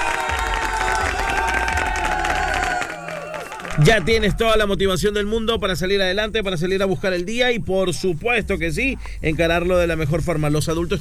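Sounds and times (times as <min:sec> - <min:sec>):
applause: 0:00.0 - 0:04.2
speech: 0:03.8 - 0:10.9.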